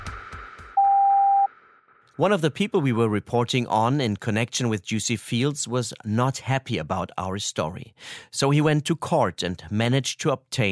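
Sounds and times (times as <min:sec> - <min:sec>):
censorship bleep tone: 0:00.8 - 0:01.5
speech: 0:02.2 - 0:10.7.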